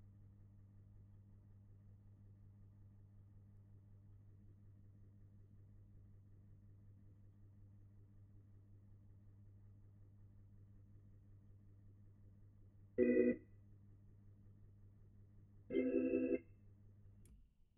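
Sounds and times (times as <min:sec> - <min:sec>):
Hammond organ: 0:13.0 - 0:13.4.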